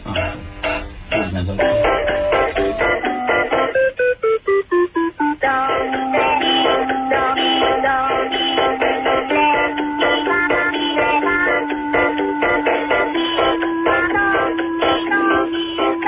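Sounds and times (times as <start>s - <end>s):
Casio electronic keyboard: 0.1s - 16.0s.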